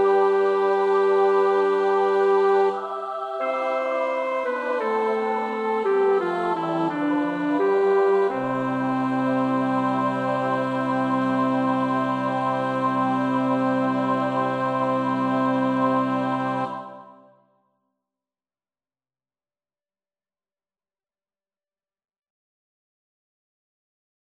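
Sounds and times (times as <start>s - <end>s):
bass: 0.0s - 2.8s, 3.4s - 16.8s.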